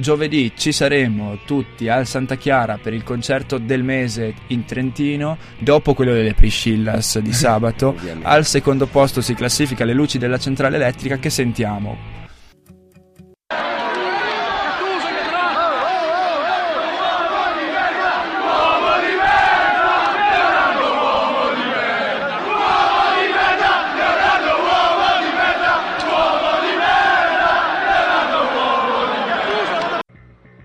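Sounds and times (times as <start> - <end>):
speech: 0.0 - 12.2
football fans chanting: 13.5 - 30.0.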